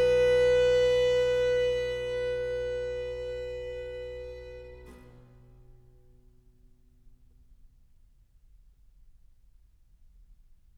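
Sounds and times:
violin and harpsichord sonata allegro: 0.0 - 5.1.

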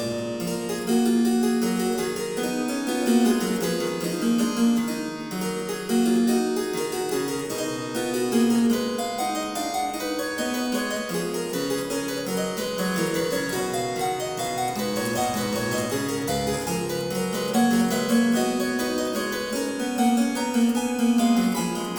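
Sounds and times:
harpsichord piece: 0.0 - 21.9.

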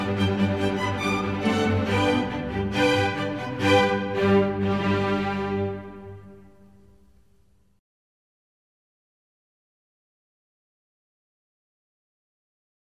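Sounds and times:
string orchestra serenade in G: 0.0 - 7.3.

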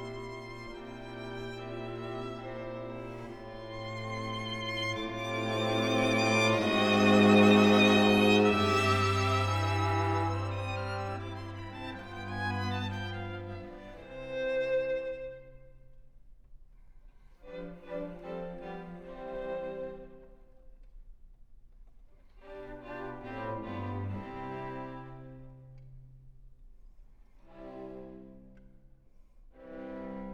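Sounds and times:
string quartet playing an adagio cantabile and allegro: 0.0 - 15.7, 17.4 - 20.2, 22.4 - 25.9, 27.5 - 28.6, 29.6 - 30.3.

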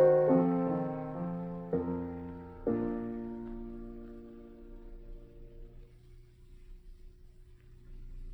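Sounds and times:
piano prelude in B flat minor: 0.0 - 6.0.

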